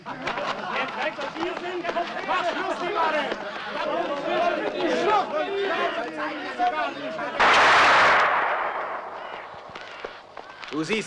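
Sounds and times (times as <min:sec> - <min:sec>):
laughter: 0:00.0 - 0:05.9
rifle gunshot in an audio drama: 0:07.4 - 0:10.6.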